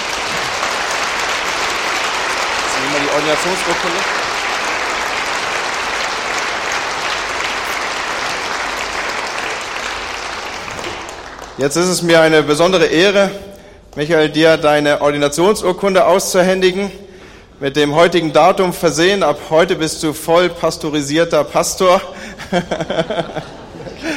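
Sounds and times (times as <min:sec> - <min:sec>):
audience applause: 0:00.0 - 0:11.6
speech: 0:03.2 - 0:04.2, 0:11.6 - 0:17.0, 0:17.6 - 0:23.6
laughter: 0:22.2 - 0:24.1.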